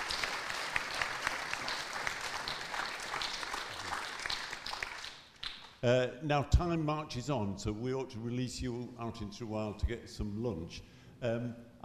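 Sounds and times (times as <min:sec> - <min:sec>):
audience applause: 0:00.0 - 0:05.7
speech: 0:05.8 - 0:11.8.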